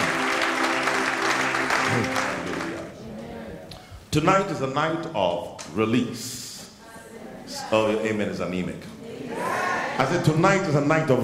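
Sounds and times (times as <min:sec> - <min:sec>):
audience clapping: 0:00.0 - 0:03.0
speech: 0:04.1 - 0:06.4, 0:07.7 - 0:09.4, 0:10.0 - 0:11.2.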